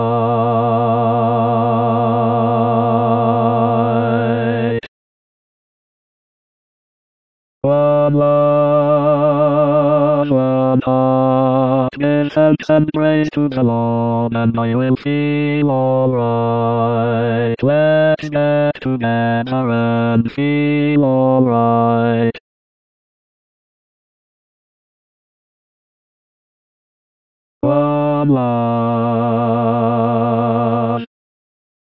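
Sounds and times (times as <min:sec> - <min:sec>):
tenor and bass singing: 0:00.0 - 0:04.9, 0:07.6 - 0:22.4, 0:27.6 - 0:31.1.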